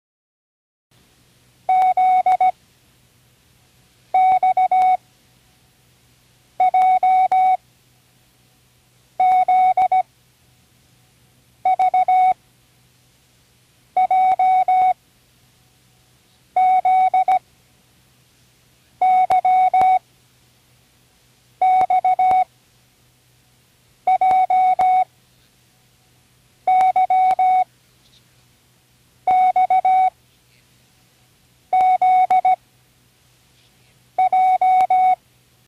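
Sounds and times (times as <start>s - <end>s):
morse code beeps: 1.7s - 2.5s, 4.2s - 5.0s, 6.6s - 7.6s, 9.2s - 10.0s, 11.7s - 12.4s, 14.0s - 15.0s, 16.6s - 17.4s, 19.0s - 20.0s, 21.6s - 22.5s, 24.1s - 25.1s, 26.7s - 27.7s, 29.3s - 30.2s, 31.7s - 32.6s, 34.2s - 35.2s.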